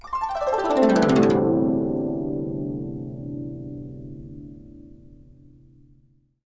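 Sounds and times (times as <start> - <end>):
guqin plucked: 0.0 - 5.1.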